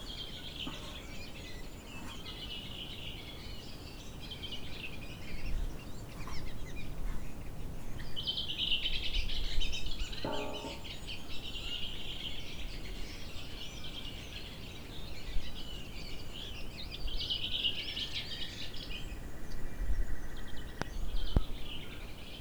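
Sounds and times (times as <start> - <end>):
birds at a cabin porch: 0.0 - 22.3.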